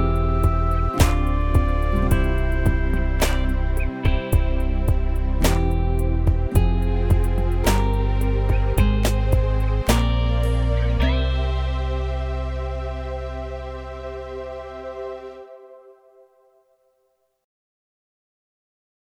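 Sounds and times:
PSR-S670 keyboard soul RnB rhythm: 0:00.0 - 0:13.1.

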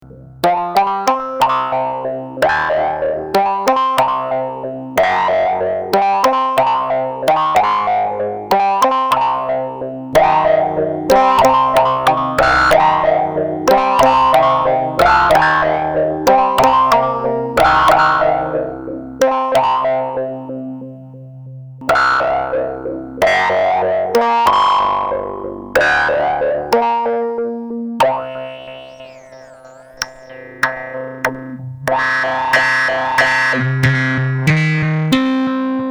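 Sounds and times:
MS20mini synthesizer: 0:00.1 - 0:35.8.

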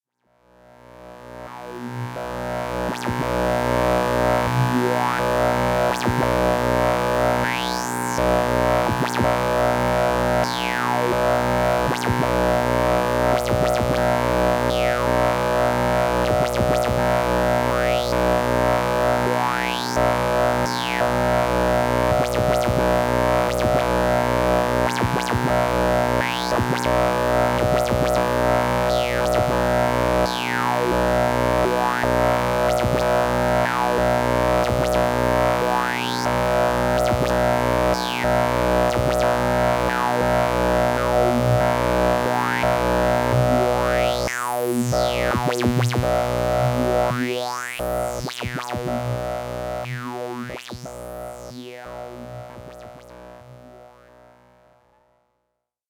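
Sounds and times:
music with switching LFOs: 0:01.9 - 0:54.0.

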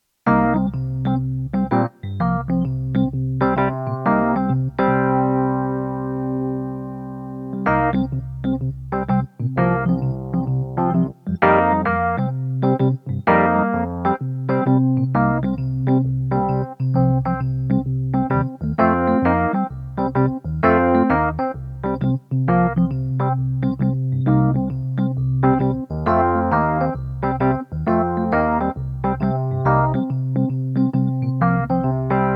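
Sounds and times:
electric piano: 0:00.2 - 0:32.3.

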